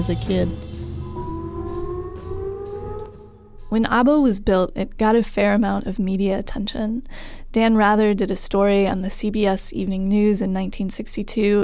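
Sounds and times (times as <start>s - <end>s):
speech: 0.0s - 0.7s, 3.7s - 11.6s
air raid siren: 0.0s - 4.3s.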